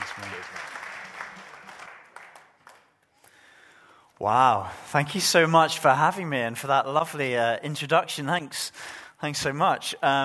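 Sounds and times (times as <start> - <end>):
audience applause welcoming a speaker: 0.0 - 3.1
speech: 4.2 - 10.2.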